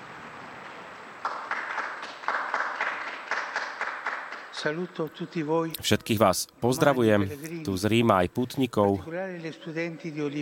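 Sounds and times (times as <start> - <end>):
applause from a crowd in Rome greeting a newly beatified person: 1.2 - 4.7
speech: 4.6 - 10.3.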